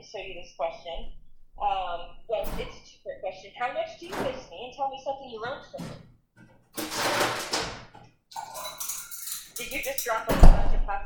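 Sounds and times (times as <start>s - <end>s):
speech: 0.0s - 6.1s, 9.6s - 11.0s
pots pans and kitchenware clattering: 2.1s - 2.9s, 4.0s - 4.6s, 5.7s - 10.8s
heavy thunk: 4.1s - 4.4s.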